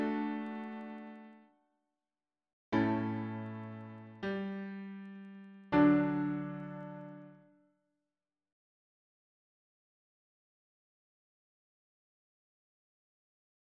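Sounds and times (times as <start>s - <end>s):
piano harmony: 0.0s - 1.4s, 2.8s - 7.5s.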